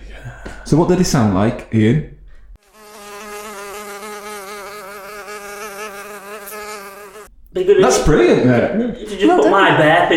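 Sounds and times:
speech: 0:00.7 - 0:02.2, 0:07.6 - 0:10.1
droning insect buzz: 0:02.6 - 0:07.3.

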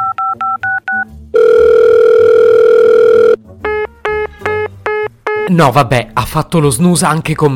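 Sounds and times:
loud steady telephone line tone: 0:00.0 - 0:03.4
telephone keypad tones: 0:00.0 - 0:05.5
speech: 0:05.5 - 0:07.5.

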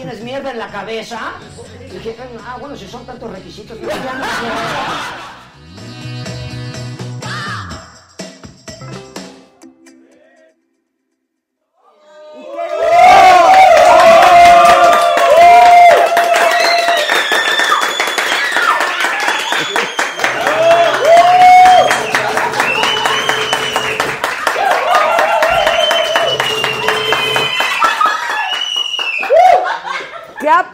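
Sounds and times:
speech: 0:00.0 - 0:05.9
laughter: 0:03.8 - 0:05.5, 0:19.1 - 0:25.0, 0:29.3 - 0:30.6
audience applause: 0:12.4 - 0:30.0.

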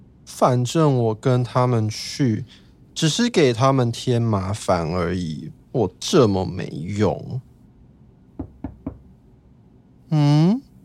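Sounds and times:
speech: 0:00.3 - 0:07.5, 0:10.1 - 0:10.6
knocking on a door: 0:08.4 - 0:09.1.

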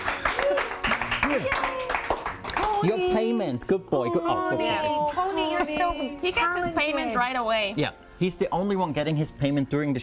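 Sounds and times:
studio audience clapping: 0:00.0 - 0:03.3
whooping and cheering voices: 0:00.1 - 0:03.0
speech: 0:02.8 - 0:10.0.

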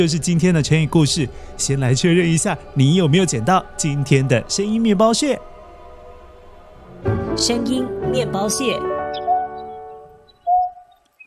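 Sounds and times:
speech: 0:00.0 - 0:05.5, 0:07.4 - 0:09.0
female greater painted-snipe calling: 0:09.1 - 0:11.2.

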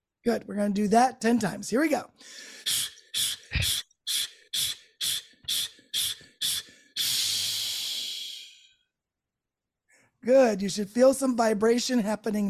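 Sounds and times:
speech: 0:00.2 - 0:03.8, 0:10.2 - 0:12.4
quick forceful breathing out: 0:02.2 - 0:08.6.

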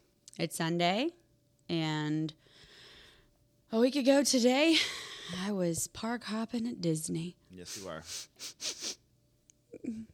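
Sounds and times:
speech: 0:00.4 - 0:02.7, 0:03.7 - 0:09.0, 0:09.8 - 0:10.1
person sniffing: 0:07.6 - 0:09.0.

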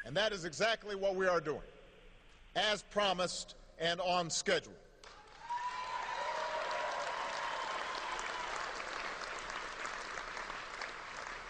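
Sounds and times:
speech: 0:00.1 - 0:01.8, 0:02.6 - 0:04.8
audience cheering and applause: 0:05.1 - 0:11.4.

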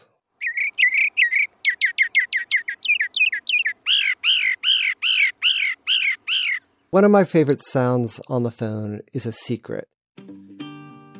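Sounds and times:
birds singing: 0:00.4 - 0:08.3
speech: 0:06.9 - 0:10.0.

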